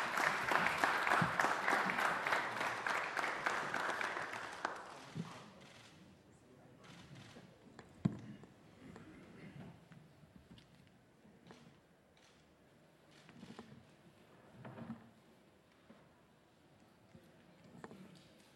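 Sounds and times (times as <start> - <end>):
church congregation applauding welcoming the Pope: 0.0 - 5.2.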